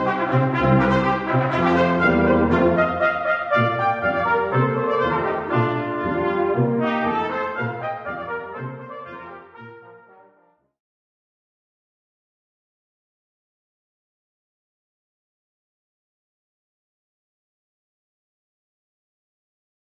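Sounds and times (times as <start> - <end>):
brass quintet: 0.0 - 10.8.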